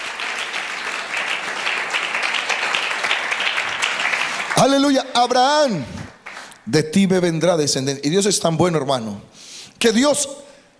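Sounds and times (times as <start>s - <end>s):
audience applause: 0.0s - 6.6s
speech: 4.6s - 6.0s, 6.7s - 10.4s.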